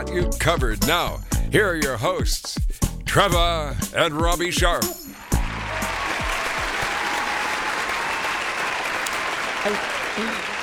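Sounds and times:
speech: 0:00.0 - 0:05.0, 0:09.6 - 0:10.5
audience applause: 0:05.1 - 0:10.6.

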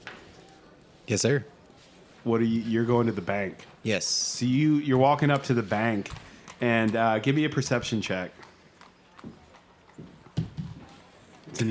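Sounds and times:
speech: 0:01.1 - 0:01.6, 0:02.2 - 0:08.4
hooves of a horse drawing a big black carriage: 0:02.4 - 0:11.6.

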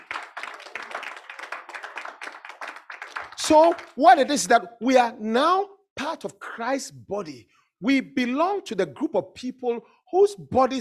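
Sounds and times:
audience clapping: 0:00.0 - 0:04.5
speech: 0:03.4 - 0:10.8.

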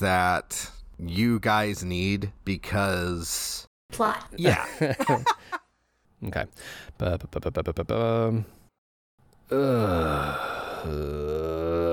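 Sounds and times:
speech: 0:00.0 - 0:05.6, 0:06.2 - 0:08.6, 0:09.5 - 0:11.6
tabletop role-playing players groaning at a bad dice roll: 0:09.5 - 0:11.9.

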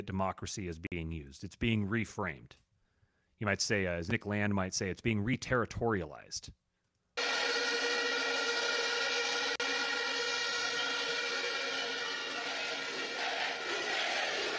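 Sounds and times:
speech: 0:00.0 - 0:02.6, 0:03.4 - 0:06.6
crowds chanting Bukele: 0:07.2 - 0:14.5.

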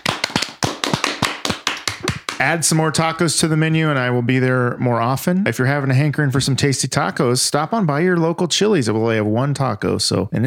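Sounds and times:
loud, crisp hand claps: 0:00.0 - 0:02.6
speech: 0:02.4 - 0:10.4.

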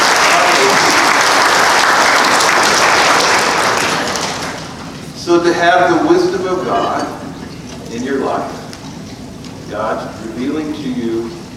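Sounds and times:
group giving a loud round of applause: 0:00.0 - 0:04.8
speech: 0:05.3 - 0:07.2, 0:07.9 - 0:08.6, 0:09.7 - 0:11.4.

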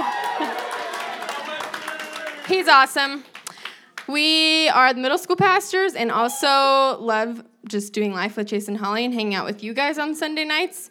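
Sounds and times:
audience cheering: 0:00.0 - 0:03.6
speech: 0:02.5 - 0:03.3, 0:04.1 - 0:10.9.

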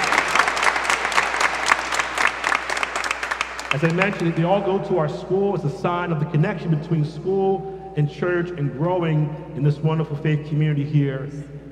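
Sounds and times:
audience applause in church: 0:00.0 - 0:04.4
speech: 0:03.7 - 0:11.7.

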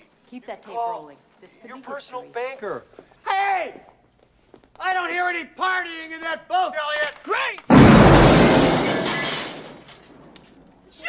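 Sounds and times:
speech: 0:00.3 - 0:04.0, 0:04.8 - 0:07.8
window glass breaking: 0:07.7 - 0:10.4.

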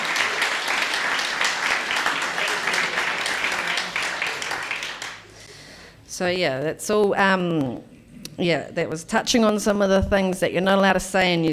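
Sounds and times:
crowd applauding: 0:00.0 - 0:05.4
speech: 0:06.2 - 0:11.5.

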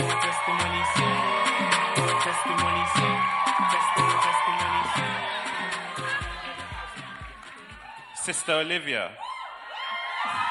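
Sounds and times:
loud music with moving bass line: 0:00.0 - 0:07.9
audience clapping: 0:00.0 - 0:08.2
crowd noise: 0:00.0 - 0:10.4
speech: 0:08.3 - 0:09.2.

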